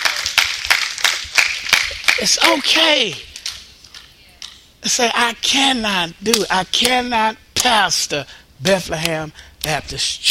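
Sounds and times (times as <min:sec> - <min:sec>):
audience clapping hands in a steady rhythm: 0:00.0 - 0:04.6, 0:09.0 - 0:10.3
speech: 0:02.2 - 0:03.3, 0:04.8 - 0:10.3.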